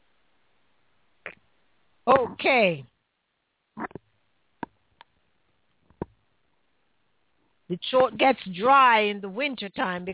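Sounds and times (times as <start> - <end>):
speech: 2.1 - 2.9, 7.7 - 10.1
mouth clicks: 3.8 - 4.0
person gulping drinking water: 3.8 - 4.0.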